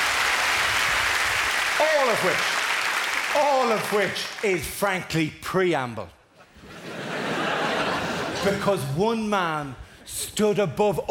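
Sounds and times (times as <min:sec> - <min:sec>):
crowd applauding: 0:00.0 - 0:04.7
speech: 0:01.8 - 0:02.6, 0:03.3 - 0:06.2, 0:08.4 - 0:11.0
laughter: 0:06.4 - 0:09.0.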